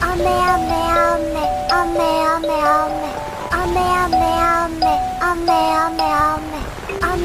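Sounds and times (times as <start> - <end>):
anime ringtone: 0.2 - 7.1.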